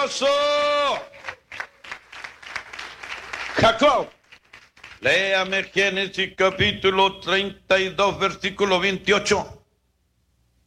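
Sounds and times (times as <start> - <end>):
speech: 0.0 - 1.2, 3.6 - 4.2, 5.0 - 9.6
church congregation clapping: 0.2 - 6.8.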